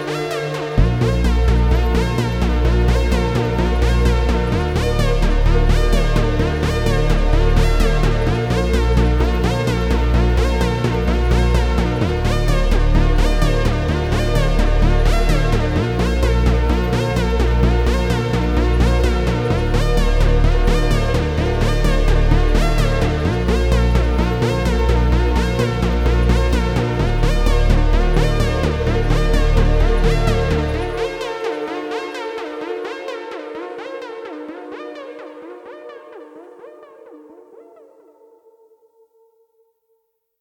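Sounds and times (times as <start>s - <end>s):
futuristic sci-fi arpeggio: 0.1s - 37.8s.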